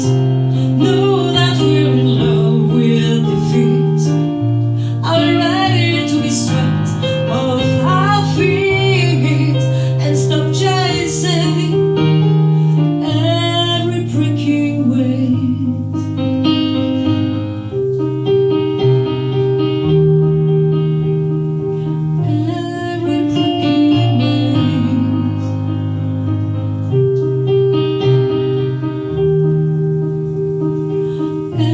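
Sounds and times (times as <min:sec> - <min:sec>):
person singing: 0:00.0 - 0:17.2, 0:22.2 - 0:25.8
piano: 0:00.0 - 0:31.7.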